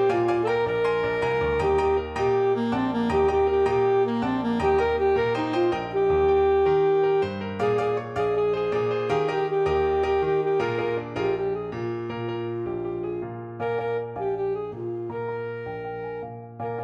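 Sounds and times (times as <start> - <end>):
salsa music: 0.0 - 12.5
saxophone: 0.0 - 16.8.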